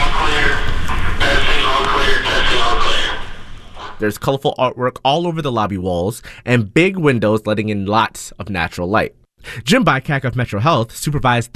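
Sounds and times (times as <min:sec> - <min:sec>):
intercom system being tested: 0:00.0 - 0:04.1
speech: 0:04.0 - 0:11.5.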